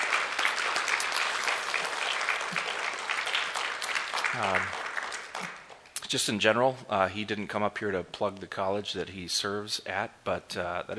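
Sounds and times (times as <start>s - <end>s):
audience applause: 0.0s - 5.8s
speech: 4.4s - 4.8s, 6.1s - 10.9s.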